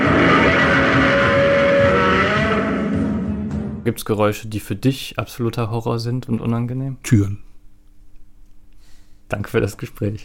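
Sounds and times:
slowed rosin-coated glove dragged along a double bass string: 0.0s - 3.9s
speech: 3.9s - 7.5s, 9.3s - 10.2s.

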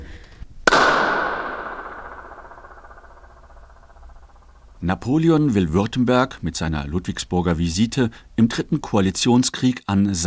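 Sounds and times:
hand clap echoing in marble hall: 0.7s - 3.7s
speech: 4.8s - 10.2s.

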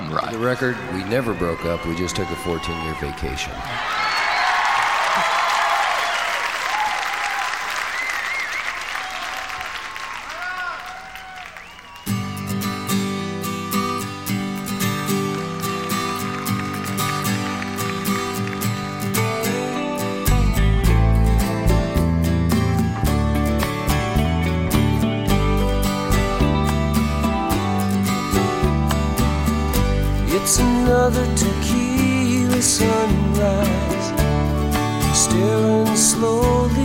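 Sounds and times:
large crowd applauding and cheering at live concert: 0.0s - 36.0s
speech: 0.1s - 4.0s
band playing with bass and drums: 12.3s - 36.8s.

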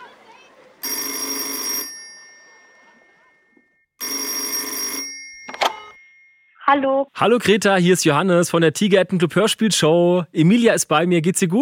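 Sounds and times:
telephone electric bell ringing: 0.8s - 6.6s
telephone line pickup click: 5.4s - 6.0s
speech: 6.7s - 11.6s.

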